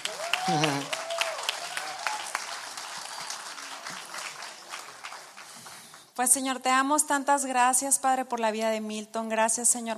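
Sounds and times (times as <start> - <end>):
audience applauding: 0.0 - 6.2
speech: 0.5 - 1.0, 6.2 - 9.9.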